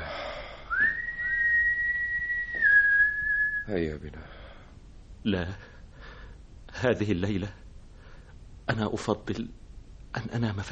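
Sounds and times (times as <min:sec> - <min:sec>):
long sustained whistle: 0:00.7 - 0:03.8
speech: 0:03.7 - 0:04.4, 0:05.2 - 0:05.7, 0:06.8 - 0:07.6, 0:08.7 - 0:10.7.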